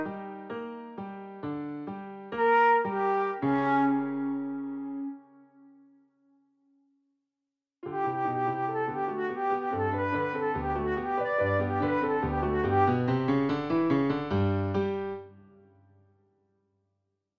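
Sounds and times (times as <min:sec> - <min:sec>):
alternating piano allegretto: 0:00.0 - 0:05.8, 0:07.8 - 0:15.8.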